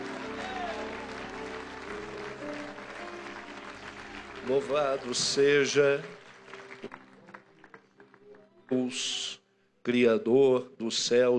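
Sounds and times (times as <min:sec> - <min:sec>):
audience applause: 0:00.0 - 0:09.0
speech: 0:04.4 - 0:06.2, 0:08.7 - 0:11.3.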